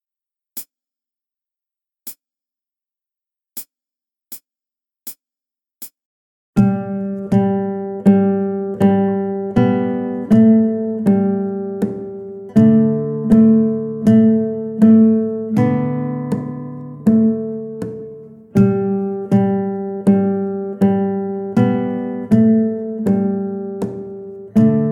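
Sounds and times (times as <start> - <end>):
guitar melody: 6.6 - 24.9.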